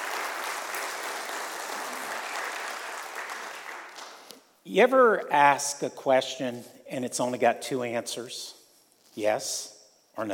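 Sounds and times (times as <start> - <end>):
audience applause: 0.0 - 4.2
speech: 4.7 - 8.6, 9.2 - 10.3.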